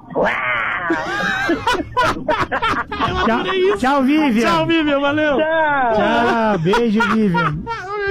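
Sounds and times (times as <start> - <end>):
person imitating a tiger's roar: 0.1 - 1.0
speech: 0.2 - 7.8
laughter: 0.7 - 8.1.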